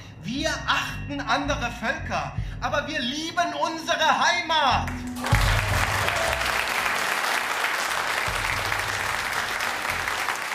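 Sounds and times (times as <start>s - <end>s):
speech: 0.3s - 5.8s
audience applause: 5.0s - 10.5s.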